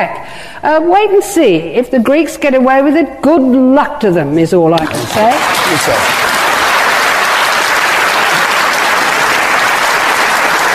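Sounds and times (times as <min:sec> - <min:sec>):
speech: 0:00.0 - 0:06.3
audience applause: 0:04.8 - 0:10.7.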